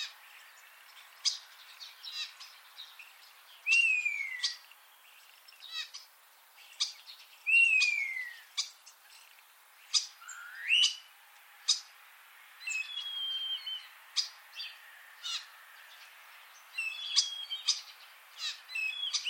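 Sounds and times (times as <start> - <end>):
common starling calls: 0.0 - 12.0, 12.6 - 19.2.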